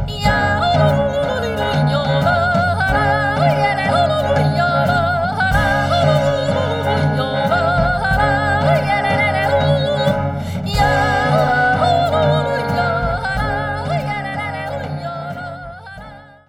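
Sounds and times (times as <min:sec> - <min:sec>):
Muotathaler Zwiegesang two-part singing: 0:00.1 - 0:16.4.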